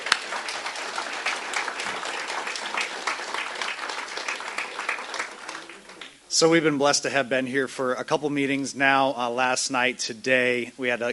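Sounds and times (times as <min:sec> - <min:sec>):
audience applause: 0:00.0 - 0:06.2
speech: 0:06.3 - 0:11.1.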